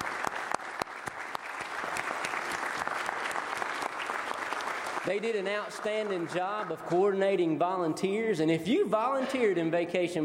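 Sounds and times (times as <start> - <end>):
audience applause: 0.0 - 7.2
speech: 5.0 - 10.2.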